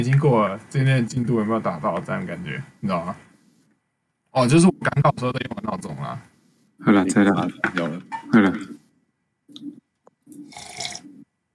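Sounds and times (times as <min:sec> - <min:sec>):
speech: 0:00.0 - 0:03.3, 0:04.4 - 0:08.8
sipping hot tea: 0:09.5 - 0:11.2.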